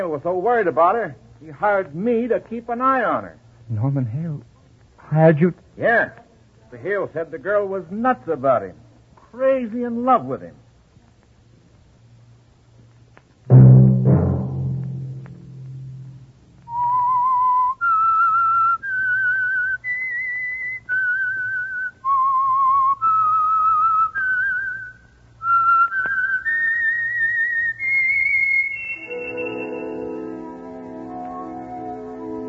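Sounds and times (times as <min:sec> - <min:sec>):
speech: 0:00.0 - 0:04.5, 0:05.1 - 0:10.6
fuller sustained chord: 0:13.5 - 0:16.3, 0:29.1 - 0:32.4
low tone: 0:13.5 - 0:16.9
person whistling a clear high melody: 0:16.7 - 0:30.3.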